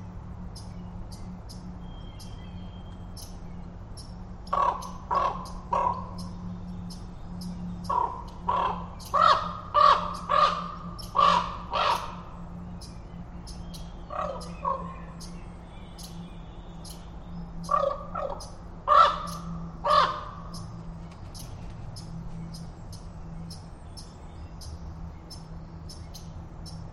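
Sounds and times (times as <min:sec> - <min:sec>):
Common Raven croaking: 0:04.4 - 0:06.4, 0:07.5 - 0:13.0, 0:14.0 - 0:15.4, 0:17.6 - 0:20.8.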